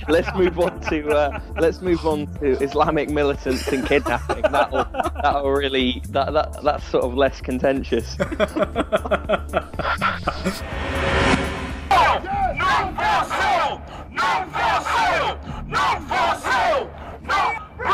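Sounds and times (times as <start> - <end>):
laughter: 0.0 - 5.8, 8.0 - 10.6
speech: 0.0 - 11.4
large crowd chanting at a protest rally: 11.9 - 17.8.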